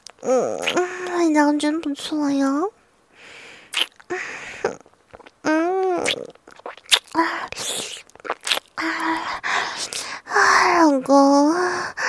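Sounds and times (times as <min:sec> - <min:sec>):
speech: 0:00.2 - 0:02.8, 0:10.8 - 0:11.9
wet slurping and sucking while eating an ice pop during a phone call: 0:03.7 - 0:10.1.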